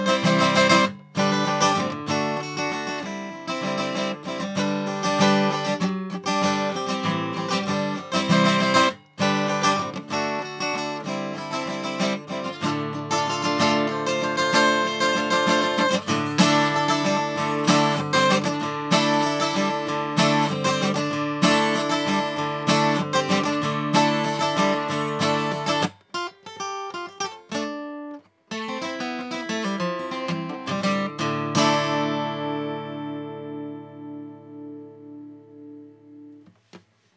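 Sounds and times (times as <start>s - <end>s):
Guild D46 acoustic guitar: 0.0s - 37.1s.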